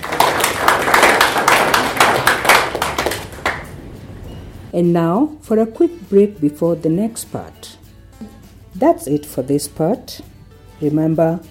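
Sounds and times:
people clapping: 0.0 - 3.8
speech: 4.8 - 7.8, 8.8 - 11.4.

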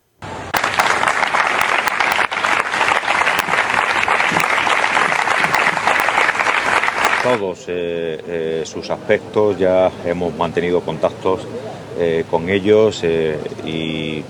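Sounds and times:
crowd applause: 0.2 - 7.4
speech: 7.3 - 14.2.

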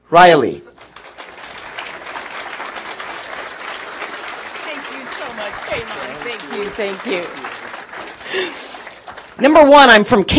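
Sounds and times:
speech: 0.1 - 0.6, 6.8 - 7.6, 8.3 - 8.6, 9.4 - 10.3
audience applause welcoming a speaker: 0.8 - 9.7
laughter: 4.5 - 9.0.

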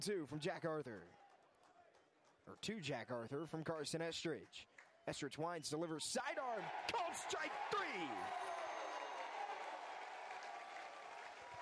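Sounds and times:
speech: 0.0 - 1.2, 2.4 - 8.5
stadium crowd cheering and clapping: 6.2 - 11.5.

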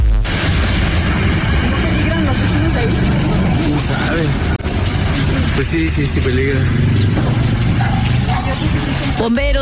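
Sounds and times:
gas explosion with huge fireball: 0.2 - 7.9
speech: 5.7 - 7.4, 9.2 - 9.5.

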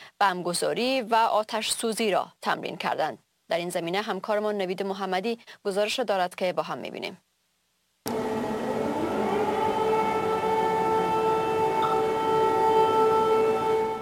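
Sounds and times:
speech: 0.2 - 7.3
air raid warning siren: 8.1 - 14.0.

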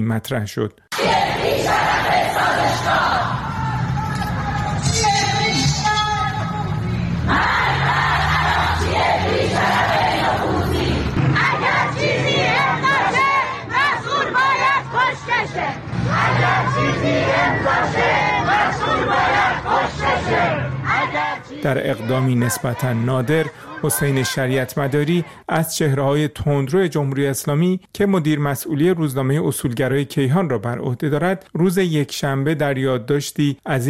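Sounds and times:
speech: 0.0 - 3.4, 17.0 - 33.8
protest crowd chanting slogans: 0.9 - 25.4.

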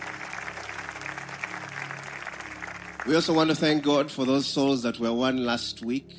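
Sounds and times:
church congregation clapping hands in praise: 0.0 - 4.6
speech: 3.0 - 6.1.

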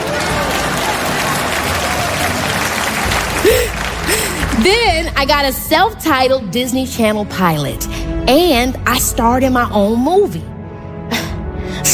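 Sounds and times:
audience applause: 0.0 - 5.2
speech: 4.6 - 10.5.

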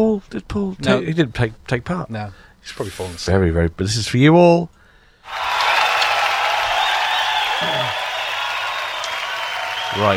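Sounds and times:
speech: 0.0 - 5.5, 9.9 - 10.1
audience applause: 5.3 - 10.1.

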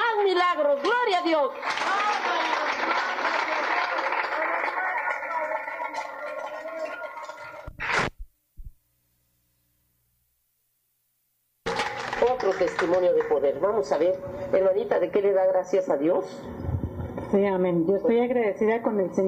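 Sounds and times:
speech: 0.5 - 2.6, 12.6 - 16.6, 17.3 - 19.2
audience applause: 1.5 - 8.0, 11.7 - 13.6.

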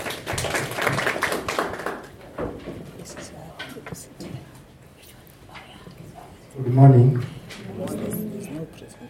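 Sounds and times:
audience applause: 0.0 - 2.4
speech: 6.8 - 7.3.

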